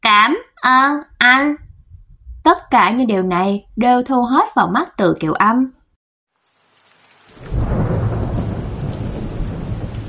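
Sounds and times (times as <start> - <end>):
speech: 0.6 - 1.6, 2.5 - 5.8
heavy rain: 6.3 - 10.0.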